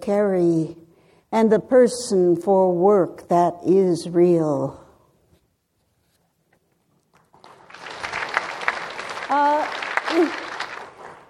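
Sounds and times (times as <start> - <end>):
speech: 0.0 - 4.8
audience applause: 7.3 - 11.2.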